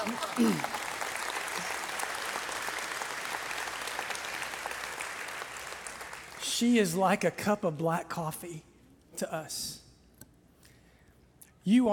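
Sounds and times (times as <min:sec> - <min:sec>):
speech: 0:00.0 - 0:00.8, 0:06.6 - 0:09.8, 0:11.6 - 0:11.9
audience applause: 0:00.0 - 0:06.4.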